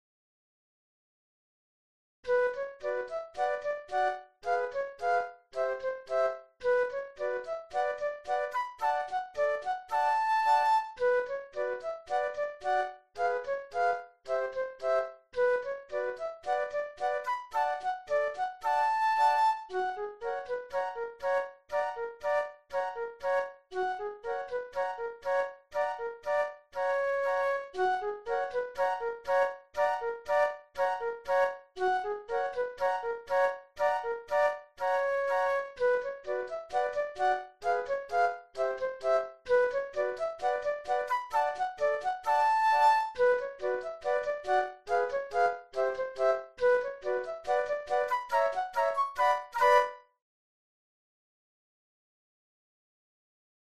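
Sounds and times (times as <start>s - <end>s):
flute trio playing: 2.3s - 24.0s, 24.8s - 50.0s.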